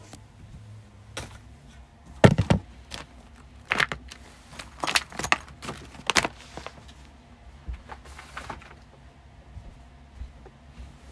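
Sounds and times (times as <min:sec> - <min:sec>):
low steady rumble: 0:00.0 - 0:11.1
desk and sofa clunking and knocking while being moved: 0:02.2 - 0:02.7.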